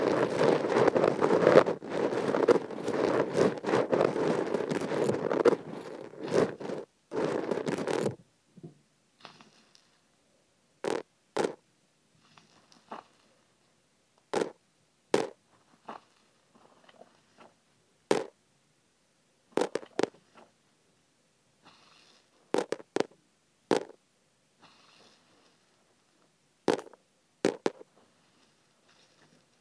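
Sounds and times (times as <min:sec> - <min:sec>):
sesame seeds poured into an ear: 0:00.0 - 0:08.2, 0:10.8 - 0:11.6, 0:14.3 - 0:17.5, 0:18.1 - 0:18.3, 0:19.6 - 0:20.5, 0:22.0 - 0:24.0, 0:26.7 - 0:29.5.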